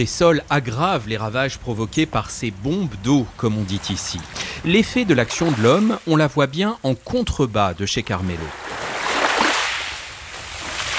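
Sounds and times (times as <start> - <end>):
speech: 0.0 - 8.7
sea waves washing along a seaside promenade at Capo Orlando: 3.1 - 6.4, 8.3 - 10.9.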